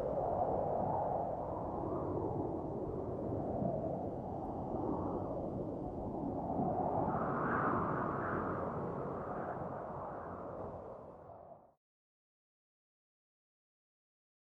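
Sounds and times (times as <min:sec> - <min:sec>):
wind: 0:00.0 - 0:11.7.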